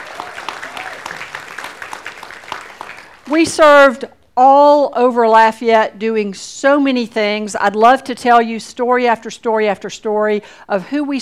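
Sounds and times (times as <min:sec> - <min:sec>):
audience applause: 0:00.0 - 0:03.4
speech: 0:03.3 - 0:11.2.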